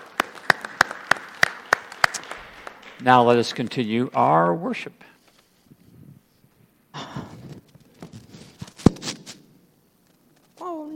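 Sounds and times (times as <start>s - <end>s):
audience applause: 0.0s - 3.6s
speech: 3.0s - 5.1s.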